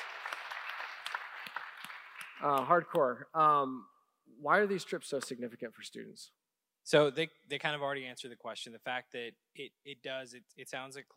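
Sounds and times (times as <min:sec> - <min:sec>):
crowd applauding: 0:00.0 - 0:02.9
speech: 0:02.4 - 0:11.1.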